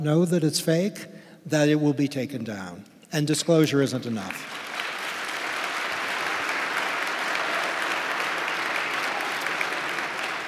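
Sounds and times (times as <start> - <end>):
speech: 0.0 - 4.6
audience applause: 4.3 - 10.4.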